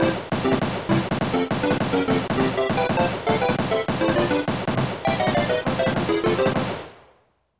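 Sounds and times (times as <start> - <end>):
music: 0.0 - 6.6.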